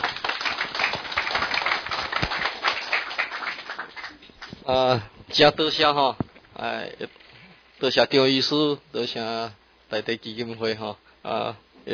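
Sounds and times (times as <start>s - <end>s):
audience applause: 0.0s - 4.6s
speech: 4.7s - 7.2s, 7.8s - 11.9s.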